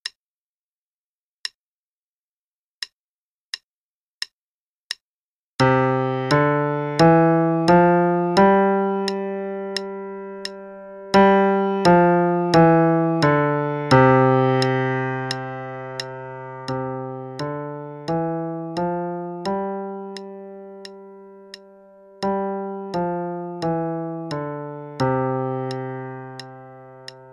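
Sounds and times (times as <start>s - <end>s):
C scale at 88 quarter notes per minute: 5.6s - 27.3s.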